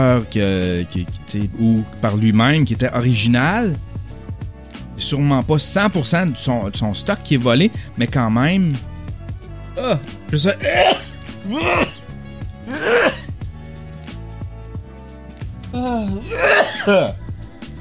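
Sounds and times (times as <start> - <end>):
speech: 0.0 - 4.0, 5.0 - 8.9, 9.8 - 11.8, 15.8 - 17.2
sneeze: 10.6 - 12.0, 12.7 - 13.3, 16.2 - 17.1.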